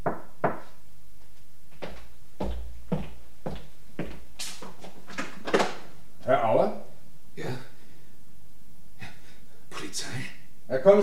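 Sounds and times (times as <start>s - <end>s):
sharp hollow knocks on a door at the top of a back staircase: 0.0s - 0.7s
low hum: 0.0s - 11.0s
speech: 10.8s - 11.0s.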